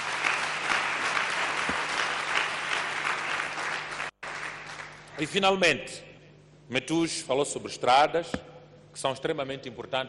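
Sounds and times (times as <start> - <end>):
crowd applause: 0.0 - 5.1
speech: 5.2 - 6.1, 6.7 - 10.0.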